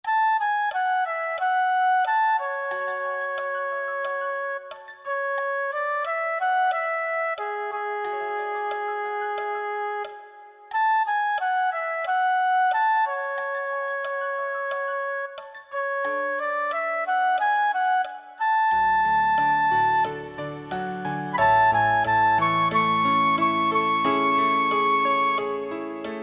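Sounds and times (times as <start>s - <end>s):
theme music accompaniment: 0.0s - 26.2s.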